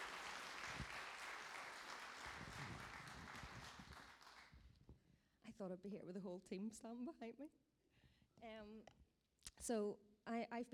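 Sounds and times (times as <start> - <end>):
audience clapping: 0.0 - 4.6
speech: 5.6 - 7.6, 8.4 - 9.0, 9.6 - 10.7.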